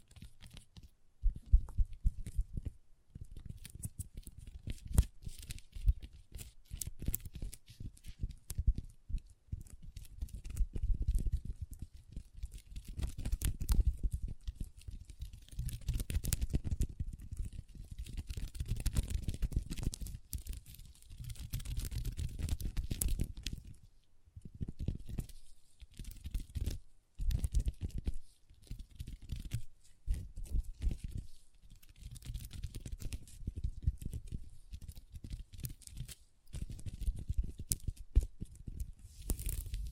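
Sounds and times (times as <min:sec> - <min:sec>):
long nails tapping and scratching across a tabletop: 0:00.0 - 0:39.9.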